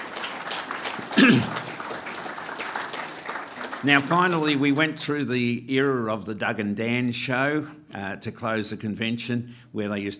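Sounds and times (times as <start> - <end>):
audience applause: 0.0 - 5.0
speech: 1.2 - 1.6, 3.8 - 10.1.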